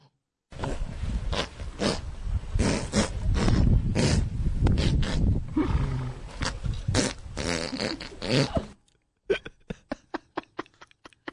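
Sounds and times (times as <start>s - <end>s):
horse farting while rolling around in the dirt: 0.6s - 8.8s
laughter: 9.3s - 11.3s.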